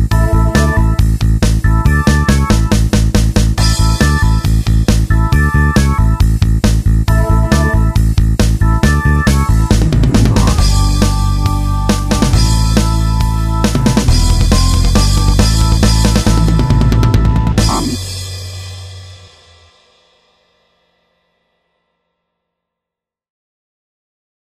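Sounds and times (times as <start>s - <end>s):
guitar backing tracks: 0.1s - 18.5s.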